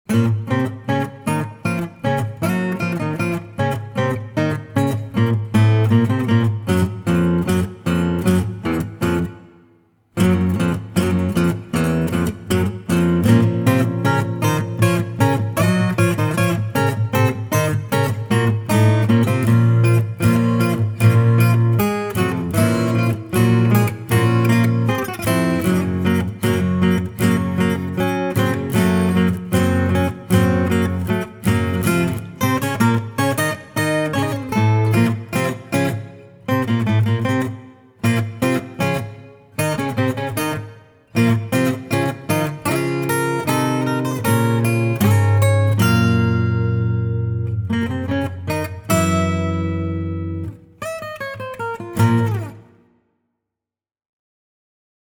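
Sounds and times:
acoustic music: 0.1s - 52.8s.

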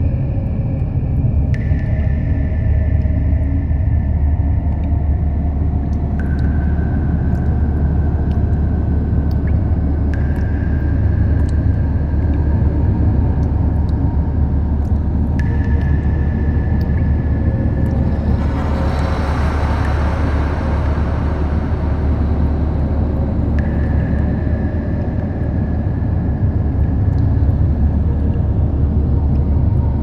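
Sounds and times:
cave ambience: 0.0s - 30.0s.

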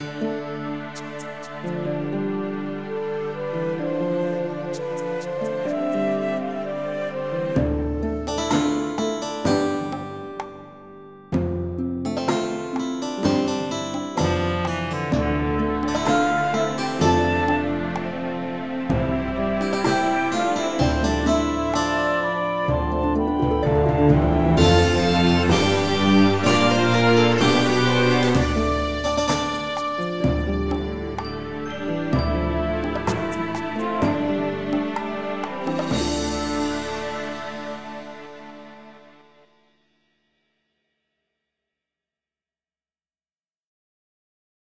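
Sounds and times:
MIDI music version: 0.0s - 39.4s.

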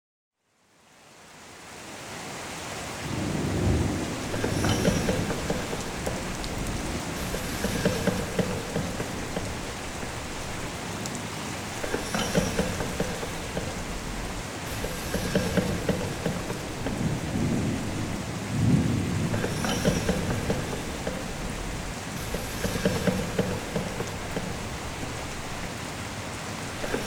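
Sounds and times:
rain: 0.4s - 27.0s
crane machinery: 4.0s - 27.0s.

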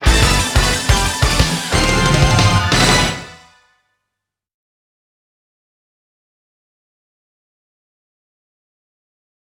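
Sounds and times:
stage clear jingle: 0.0s - 3.6s.

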